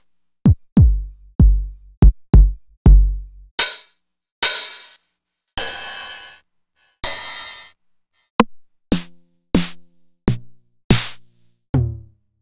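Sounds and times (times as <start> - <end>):
Roland MV8800 dirty drum sound: 0.5 - 3.8, 8.9 - 12.0.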